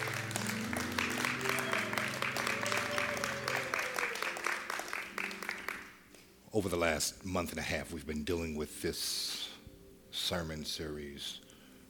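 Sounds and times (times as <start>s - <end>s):
audience clapping hands: 0.0s - 6.2s
speech: 6.6s - 9.4s, 10.2s - 11.5s.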